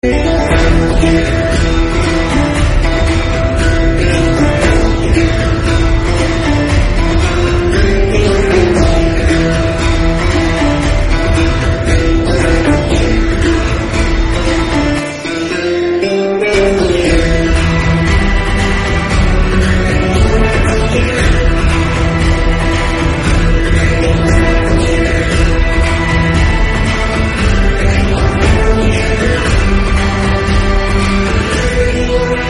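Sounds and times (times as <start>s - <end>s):
fight scene entry music: 0.0s - 32.4s.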